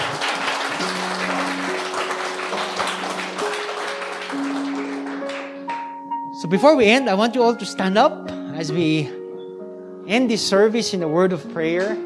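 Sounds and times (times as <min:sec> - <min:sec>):
congregation clapping at the close of a church service: 0:00.0 - 0:05.9
sustained musical tones: 0:00.2 - 0:07.6
speech: 0:06.5 - 0:09.2, 0:10.1 - 0:12.0.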